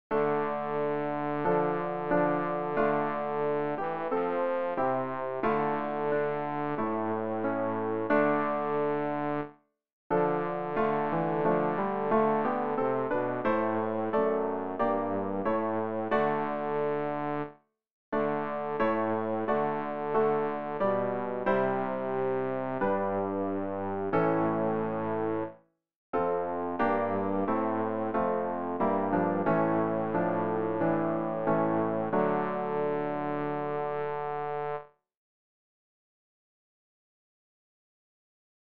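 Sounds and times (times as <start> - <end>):
bass: 0.1 - 9.4, 10.1 - 17.5, 18.2 - 25.5, 26.2 - 34.8.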